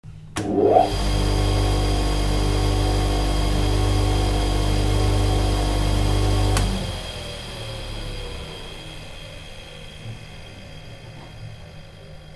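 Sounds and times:
polishing machine in jewellery studio: 0:00.4 - 0:12.3.

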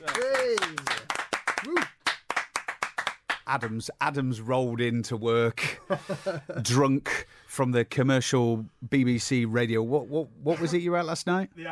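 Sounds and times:
hand claps: 0:00.0 - 0:03.8
speech: 0:03.5 - 0:11.6.

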